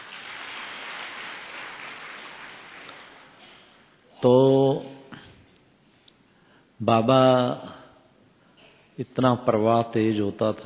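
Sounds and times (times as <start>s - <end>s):
audience clapping: 0.0s - 3.8s
speech: 4.2s - 4.9s, 6.8s - 7.7s, 9.0s - 10.6s.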